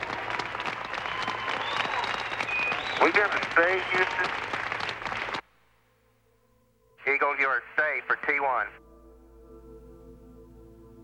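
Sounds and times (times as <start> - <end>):
crowd applauding: 0.0 - 5.4
speech: 3.0 - 4.6, 7.8 - 8.8.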